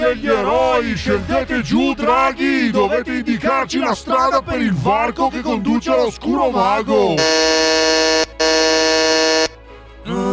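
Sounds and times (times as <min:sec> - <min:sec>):
speech: 0:00.1 - 0:07.7, 0:10.0 - 0:10.3
intercom buzzer ringing: 0:07.2 - 0:09.6.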